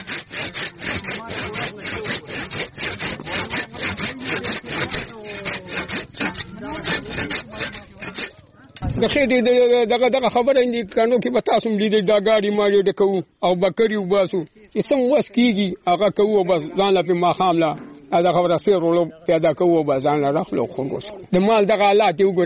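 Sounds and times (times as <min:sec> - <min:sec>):
saw cutting branches of a wild tree: 0:00.0 - 0:08.8
person speaking: 0:00.1 - 0:22.4.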